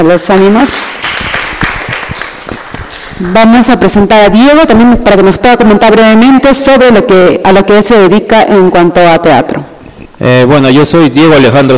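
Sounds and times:
speech: 0:00.0 - 0:00.8, 0:03.2 - 0:11.7
audience applause: 0:00.8 - 0:03.2.

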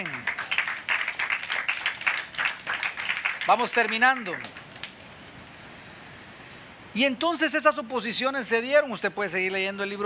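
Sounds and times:
audience applause: 0:00.0 - 0:04.6
speech: 0:03.5 - 0:04.6, 0:06.9 - 0:10.0.

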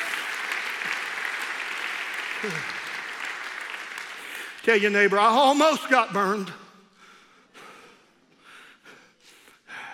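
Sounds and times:
crowd applauding: 0:00.0 - 0:05.6
speech: 0:02.4 - 0:02.8, 0:04.7 - 0:06.6.

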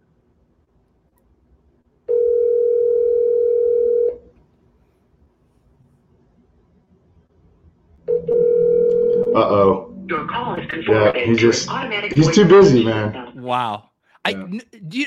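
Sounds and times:
outgoing phone call ringing tones: 0:02.1 - 0:04.2, 0:08.1 - 0:09.6
speech: 0:10.7 - 0:15.0.

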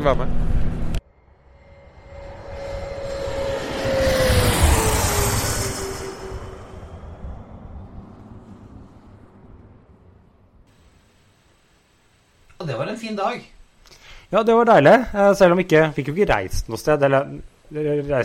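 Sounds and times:
speech: 0:00.0 - 0:00.5, 0:13.1 - 0:13.5, 0:14.3 - 0:18.2
fully loaded Boeing 777 taking off: 0:01.0 - 0:11.0.

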